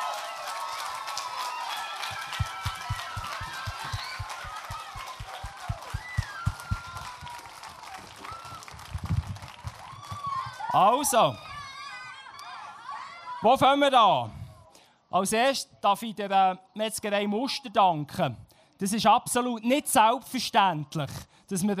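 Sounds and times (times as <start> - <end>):
crowd applause: 0.0 - 10.8
speech: 10.8 - 11.5, 13.4 - 14.4, 15.1 - 21.7.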